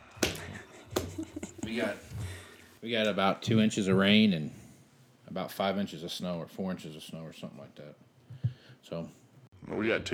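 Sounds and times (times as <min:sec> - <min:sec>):
slow sarcastic hand clapping: 0:00.2 - 0:01.8
speech: 0:01.2 - 0:02.1, 0:02.8 - 0:04.6, 0:05.3 - 0:08.1, 0:08.8 - 0:10.1.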